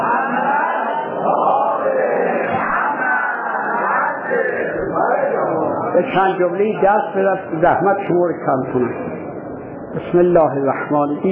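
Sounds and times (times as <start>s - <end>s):
crowd reciting salawat in unison at a religious gathering: 0.0s - 5.9s
speech: 6.0s - 9.2s, 9.9s - 11.3s.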